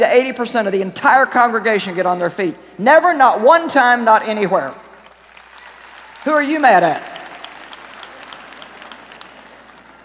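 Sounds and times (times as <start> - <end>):
speech: 0.0 - 4.8, 6.2 - 7.2
weak audience clapping: 5.0 - 10.0.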